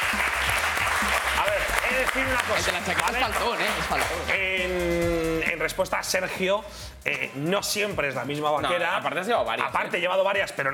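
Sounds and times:
audience applause: 0:00.0 - 0:04.3
speech: 0:01.5 - 0:10.7.

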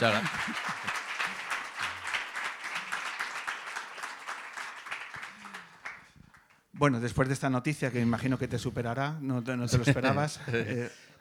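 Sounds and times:
speech: 0:00.0 - 0:00.6, 0:06.8 - 0:11.1
applause: 0:00.0 - 0:07.0.

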